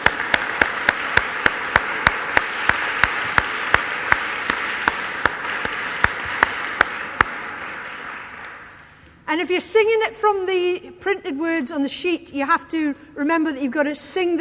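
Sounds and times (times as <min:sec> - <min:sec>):
round of applause: 0:00.0 - 0:09.0
speech: 0:09.4 - 0:14.3.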